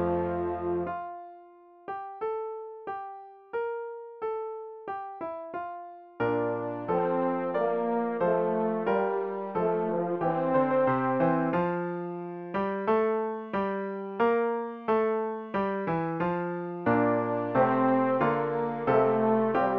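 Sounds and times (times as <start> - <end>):
French horn playing a hymn: 0.0 - 1.1, 6.3 - 12.0, 16.9 - 19.7
piano accompanying a hymn: 0.0 - 19.7.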